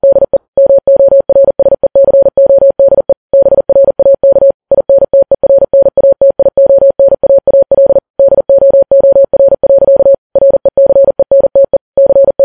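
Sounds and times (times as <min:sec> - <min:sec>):
morse code beeps: 0:00.0 - 0:12.4.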